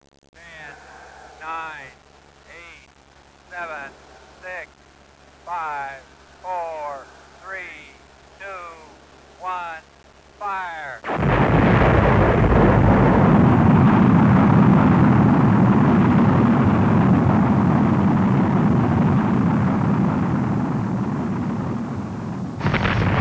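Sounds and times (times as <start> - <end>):
blast: 11.0 - 23.1.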